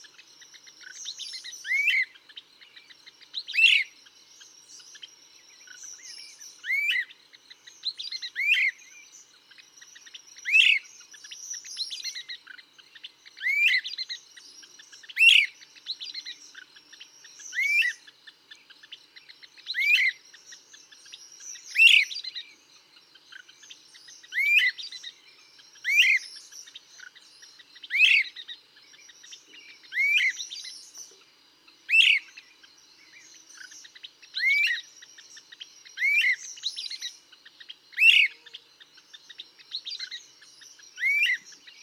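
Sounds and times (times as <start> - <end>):
Great Crested Flycatcher calling: 0.0 - 41.8.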